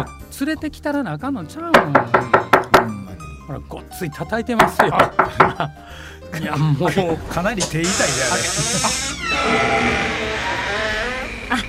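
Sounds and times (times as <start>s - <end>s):
speech: 0.4s - 10.3s, 11.5s - 11.6s
laughter: 4.7s - 5.8s, 6.4s - 9.2s, 11.5s - 11.6s
door squeaking loudly as it opens: 7.6s - 11.6s.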